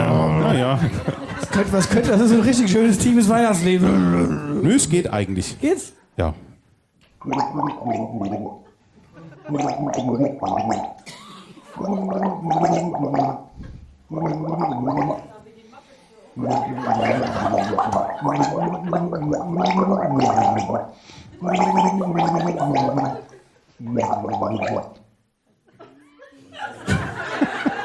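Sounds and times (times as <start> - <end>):
person gargling with water: 0.0 - 0.7, 3.6 - 4.8, 7.2 - 15.4, 16.4 - 25.0
chuckles and laughter: 0.0 - 4.3, 8.6 - 9.8, 11.0 - 12.0, 16.4 - 18.7, 23.0 - 23.6, 25.6 - 27.8
speech: 0.7 - 6.5, 7.2 - 8.6, 9.5 - 11.2, 11.8 - 15.3, 16.4 - 25.0.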